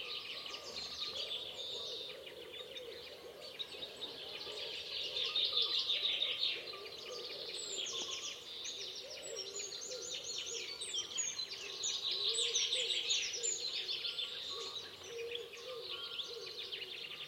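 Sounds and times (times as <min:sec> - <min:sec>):
natural animal sounds at daybreak: 0:00.0 - 0:17.2.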